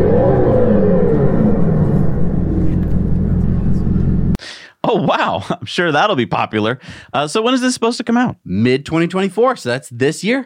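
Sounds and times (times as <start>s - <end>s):
synthetic V8 exhaust note from an electric car: 0.0s - 4.4s
speech: 5.3s - 10.4s.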